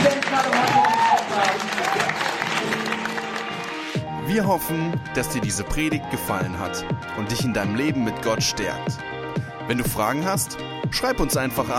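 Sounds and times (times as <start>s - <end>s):
audience applause: 0.0s - 4.0s
speech: 4.4s - 9.1s, 9.7s - 11.7s.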